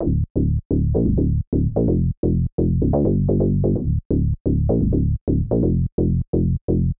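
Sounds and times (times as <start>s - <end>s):
bass: 0.0s - 6.9s.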